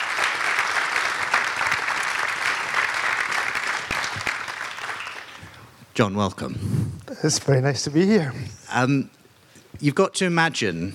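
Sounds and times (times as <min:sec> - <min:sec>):
audience applause: 0:00.0 - 0:05.6
speech: 0:06.0 - 0:09.2, 0:09.8 - 0:10.9.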